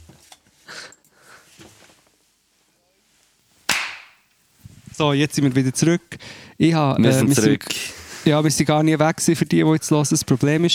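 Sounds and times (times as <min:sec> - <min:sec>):
hand clap for audio sync: 0:03.7 - 0:04.2
speech: 0:05.0 - 0:10.7.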